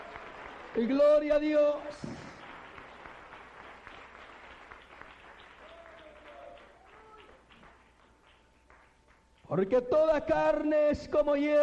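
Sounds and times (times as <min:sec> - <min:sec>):
audience applause: 0:00.0 - 0:09.2
speech: 0:00.8 - 0:02.1, 0:09.5 - 0:11.6.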